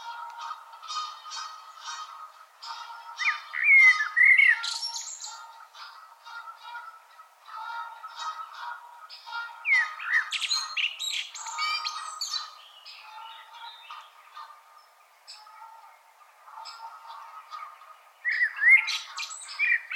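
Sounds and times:
common blackbird Turdus merula warbling with scratchy twitters: 0:03.2 - 0:05.5, 0:09.2 - 0:19.9.

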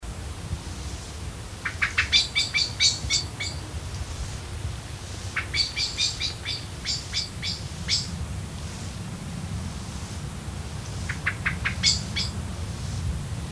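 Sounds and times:
low background rumble: 0:00.0 - 0:13.5
common blackbird call notes: 0:01.6 - 0:03.7, 0:05.2 - 0:08.2, 0:10.9 - 0:12.4.

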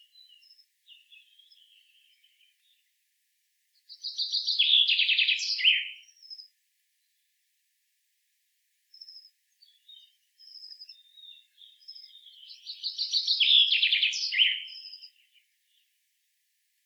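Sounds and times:
common chaffinch Fringilla coelebs song: 0:00.0 - 0:02.9, 0:03.8 - 0:06.5, 0:08.9 - 0:16.0.

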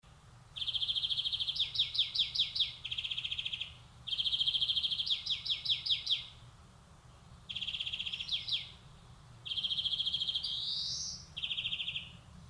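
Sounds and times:
European greenfinch Chloris chloris song of buzzy trills and twittering: 0:00.6 - 0:06.4, 0:07.5 - 0:08.8, 0:09.4 - 0:12.2.

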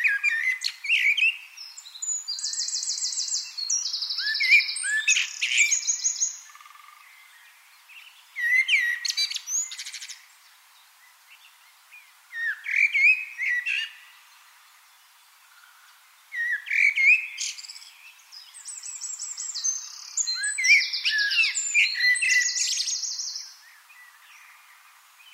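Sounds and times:
common blackbird Turdus merula singing a varied warbling song: 0:00.0 - 0:10.3, 0:12.3 - 0:14.5, 0:15.6 - 0:25.3.

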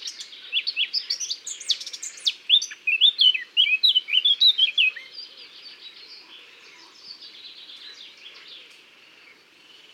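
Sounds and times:
Eurasian blackcap Sylvia atricapilla singing: 0:00.0 - 0:08.9.

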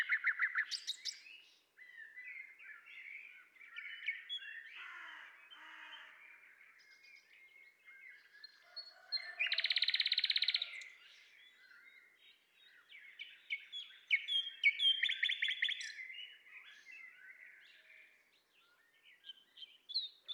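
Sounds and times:
common nightingale Luscinia megarhynchos singing rattling trills and whistles: 0:00.0 - 0:03.0, 0:09.5 - 0:12.0, 0:12.6 - 0:17.4, 0:18.6 - 0:20.3.

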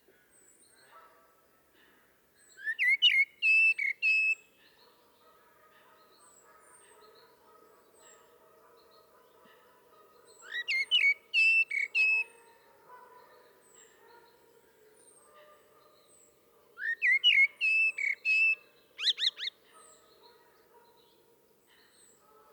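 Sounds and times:
common blackbird singing: 0:02.5 - 0:04.4, 0:10.3 - 0:12.4, 0:16.1 - 0:19.6.

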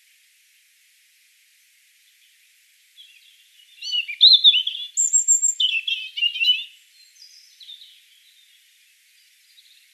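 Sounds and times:
European robin singing: 0:03.0 - 0:08.6.

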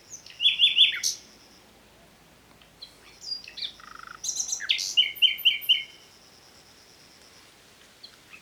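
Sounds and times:
common nightingale singing: 0:00.0 - 0:01.4, 0:02.8 - 0:06.1.

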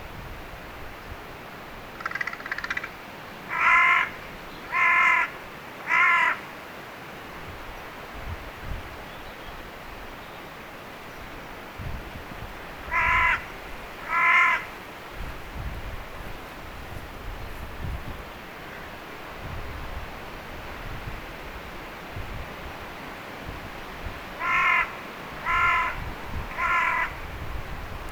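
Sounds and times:
Corvus corone carrion crow cawing: 0:02.0 - 0:06.5, 0:12.9 - 0:14.7, 0:24.4 - 0:27.2.

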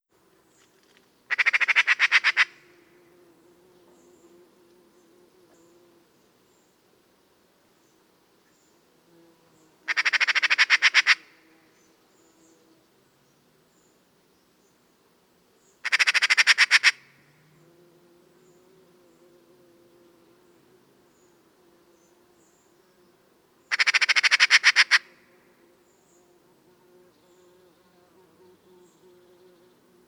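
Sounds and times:
Pica pica chant: 0:01.3 - 0:02.8, 0:09.9 - 0:11.4, 0:15.8 - 0:17.2, 0:23.7 - 0:25.3.

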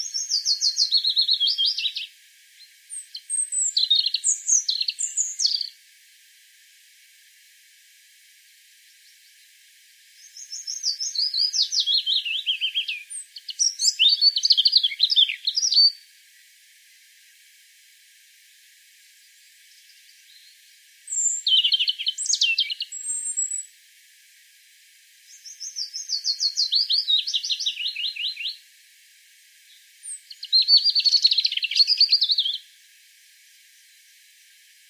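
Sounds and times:
European robin singing: 0:00.0 - 0:05.8, 0:10.2 - 0:16.0, 0:19.7 - 0:23.7, 0:25.3 - 0:28.6, 0:29.7 - 0:32.6.

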